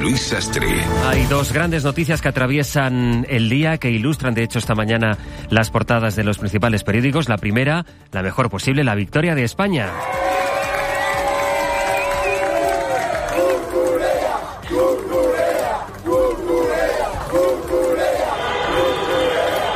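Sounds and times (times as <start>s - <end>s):
speech: 0.1s - 10.5s
roar of celebrating people: 9.9s - 19.7s
large crowd of fans chanting in unison in celebration: 12.2s - 19.7s.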